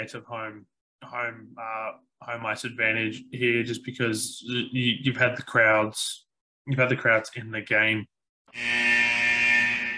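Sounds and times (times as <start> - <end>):
speech: 0.0 - 9.0
end-of-period buzzer: 8.5 - 9.9.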